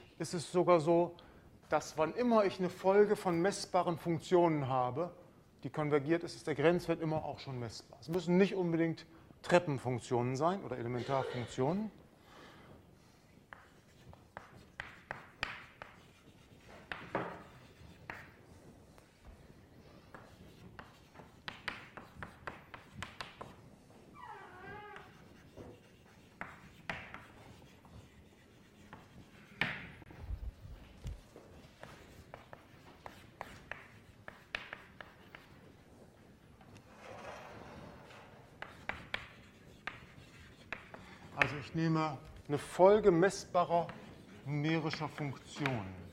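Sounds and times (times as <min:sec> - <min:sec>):
speech: 0:00.2 - 0:12.0, 0:41.8 - 0:46.0
pen or chalk writing on a board during a maths lecture: 0:13.0 - 0:24.0, 0:24.7 - 0:46.1.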